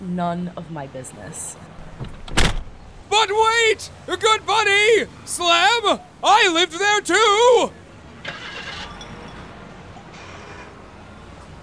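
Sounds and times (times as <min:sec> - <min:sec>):
speech: 0:00.2 - 0:02.4, 0:03.2 - 0:08.4
car driving away with low engine rumble: 0:01.8 - 0:03.1.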